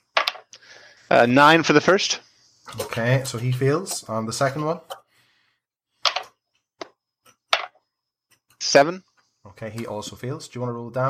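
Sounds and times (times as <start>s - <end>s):
eight-sided dice being rolled: 0.1s - 0.5s, 6.0s - 7.8s
speech: 1.1s - 5.0s, 8.7s - 11.0s.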